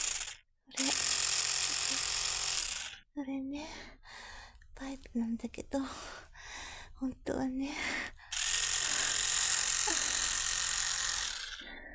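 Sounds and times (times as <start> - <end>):
electric toothbrush head buzzing: 0.0 - 3.0, 4.8 - 6.9, 7.7 - 11.7
speech: 3.2 - 4.1, 4.8 - 6.2, 7.0 - 8.0.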